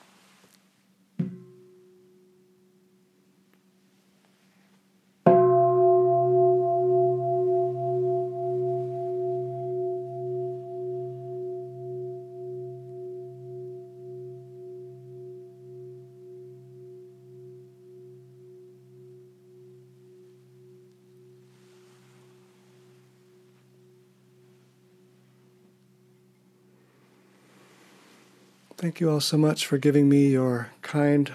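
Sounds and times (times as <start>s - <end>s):
meditation bell ringing: 5.3s - 28.5s
speech: 28.8s - 31.3s.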